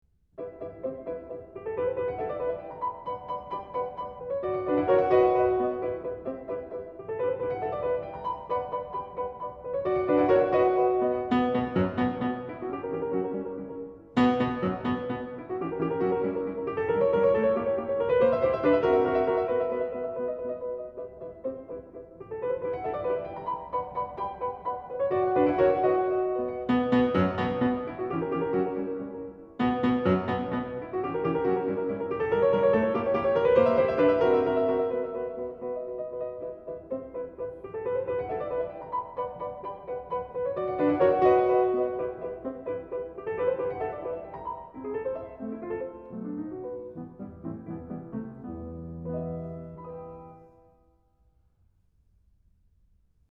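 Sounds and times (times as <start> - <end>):
piano piece: 0.3 - 53.0.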